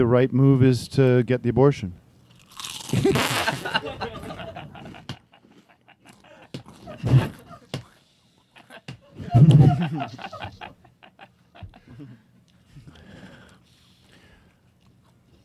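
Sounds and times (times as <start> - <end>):
speech: 0.0 - 2.0, 9.4 - 10.6
man crunching chips: 2.2 - 3.8
laughter: 2.9 - 12.2
breathy sounds: 6.1 - 8.6, 11.8 - 14.6.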